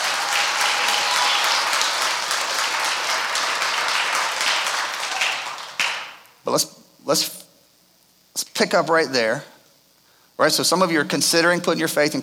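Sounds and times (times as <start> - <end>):
crowd applauding: 0.0 - 6.2
speech: 6.4 - 7.4, 8.6 - 9.5, 10.4 - 12.2.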